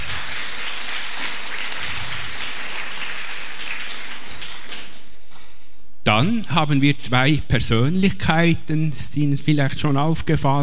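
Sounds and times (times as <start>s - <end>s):
crowd applauding: 0.0s - 5.0s
speech: 6.1s - 10.6s.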